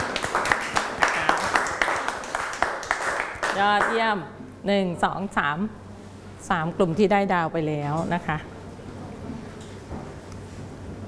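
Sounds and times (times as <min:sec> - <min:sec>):
classroom clapping for themselves: 0:00.0 - 0:04.1
speech: 0:03.6 - 0:05.8, 0:06.4 - 0:08.5.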